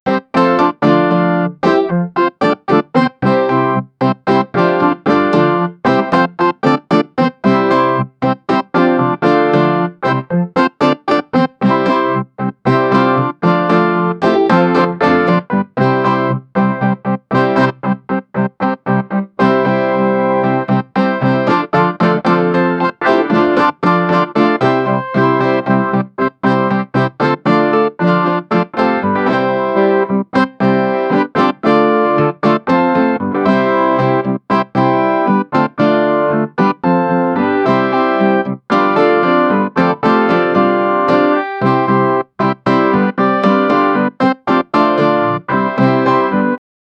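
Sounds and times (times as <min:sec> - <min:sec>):
Easter dance music: 0:00.1 - 0:46.4.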